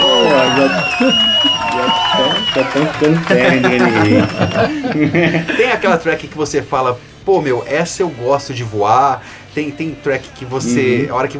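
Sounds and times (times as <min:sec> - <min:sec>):
scattered clapping: 0:00.0 - 0:04.7
crowd cheering: 0:00.0 - 0:06.1
laughter: 0:00.0 - 0:06.3, 0:10.6 - 0:11.1
speech: 0:00.6 - 0:11.3.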